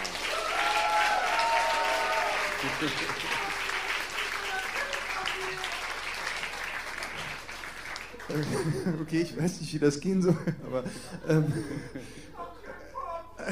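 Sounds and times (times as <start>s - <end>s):
audience applause: 0.0s - 8.9s
laughter: 2.2s - 3.7s, 8.3s - 9.4s, 10.2s - 13.4s
speech: 2.6s - 3.5s, 8.3s - 12.4s.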